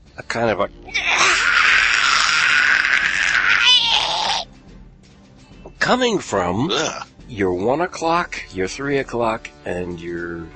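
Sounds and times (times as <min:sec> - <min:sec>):
speech: 0:00.2 - 0:01.0, 0:05.9 - 0:10.5
loud harsh high-pitched animal shriek: 0:00.9 - 0:04.5, 0:06.7 - 0:07.1.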